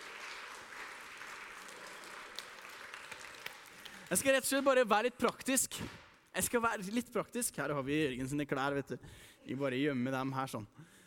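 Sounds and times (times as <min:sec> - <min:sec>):
audience applause: 0:00.0 - 0:04.4
speech: 0:04.1 - 0:10.9.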